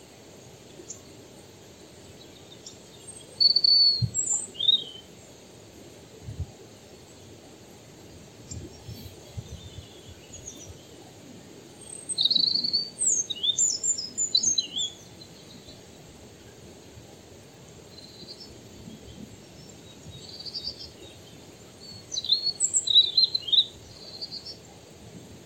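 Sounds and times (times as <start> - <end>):
background hiss: 0.0 - 25.4
European robin singing: 2.0 - 5.3, 8.4 - 11.1, 11.8 - 15.9, 17.9 - 24.7.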